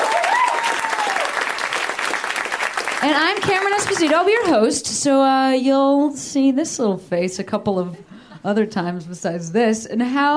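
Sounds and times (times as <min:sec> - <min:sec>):
audience whooping: 0:00.0 - 0:02.7
audience applause: 0:00.0 - 0:04.2
speech: 0:03.0 - 0:10.3.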